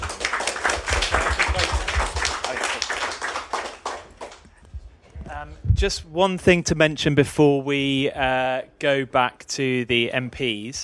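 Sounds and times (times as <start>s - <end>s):
audience applause: 0.0s - 4.5s
speech: 5.8s - 10.8s.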